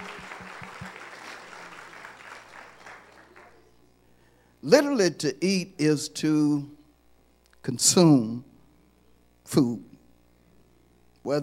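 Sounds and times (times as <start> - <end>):
audience applause: 0.0 - 3.7
speech: 4.6 - 6.8, 7.7 - 8.5, 9.5 - 9.9, 11.2 - 11.4.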